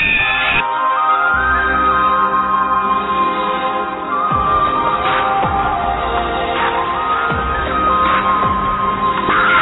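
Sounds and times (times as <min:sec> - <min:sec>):
horror music: 0:00.2 - 0:09.6.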